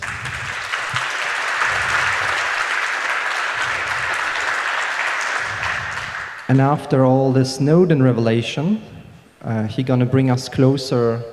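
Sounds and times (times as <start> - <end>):
crowd applauding welcoming the speaker: 0.0 - 6.7
faint low murmurs: 0.0 - 9.9
speech: 6.5 - 11.3.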